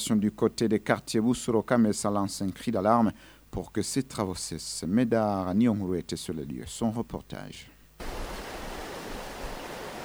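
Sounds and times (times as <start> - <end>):
speech: 0.0 - 8.2
flowing river water: 8.0 - 10.0.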